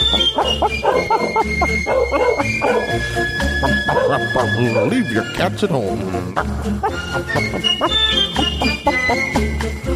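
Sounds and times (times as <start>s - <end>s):
basset hounds barking at a parade: 0.0s - 5.1s, 6.7s - 8.0s
speech: 0.1s - 9.8s.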